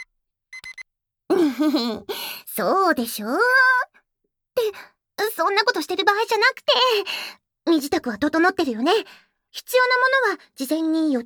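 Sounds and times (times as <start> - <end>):
timer alarm electronic beeps: 0.6 - 0.8
speech: 1.6 - 3.8, 4.6 - 11.2.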